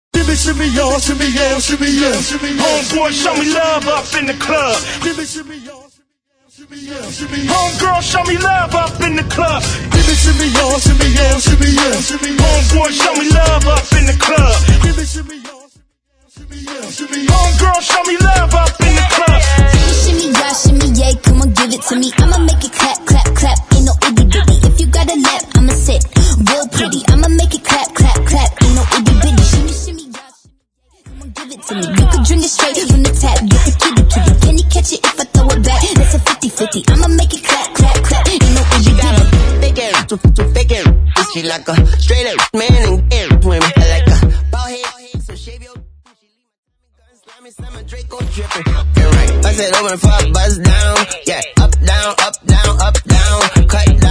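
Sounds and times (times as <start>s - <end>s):
hype a cappella vocal intro: 0.2s - 30.4s, 31.0s - 45.8s, 47.0s - 54.0s.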